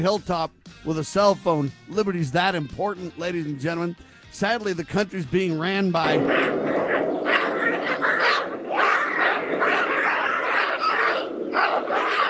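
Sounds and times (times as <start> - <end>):
speech: 0.0 - 6.5
baboons screaming and chasing one another: 6.0 - 12.2.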